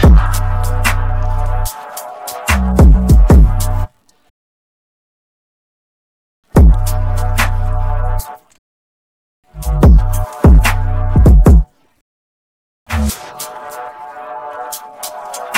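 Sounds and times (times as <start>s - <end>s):
instrumental music: 0.0s - 3.9s, 6.6s - 8.6s, 9.5s - 11.7s, 12.9s - 15.5s.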